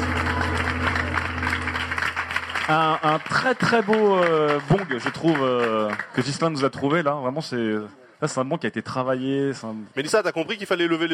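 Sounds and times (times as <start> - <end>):
low electrical hum: 0.0 - 3.1
room full of people clapping: 0.0 - 7.1
speech: 2.7 - 11.1.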